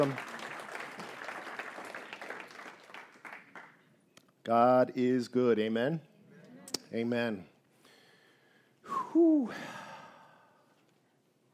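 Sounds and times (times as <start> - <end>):
speech: 0.0 - 0.3, 4.5 - 6.1, 6.9 - 7.5, 9.2 - 9.7
audience applause: 0.0 - 3.7.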